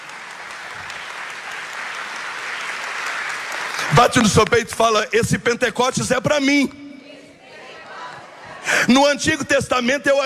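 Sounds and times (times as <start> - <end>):
crowd applause: 0.0 - 5.1
speech: 3.9 - 6.8, 8.9 - 10.2.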